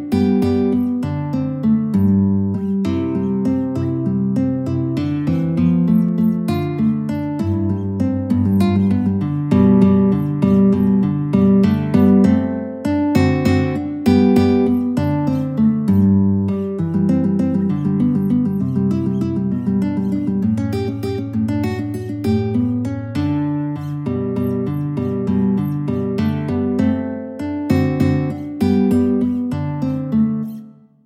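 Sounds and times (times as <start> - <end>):
guitar playing a waltz in G: 0.0 - 31.0.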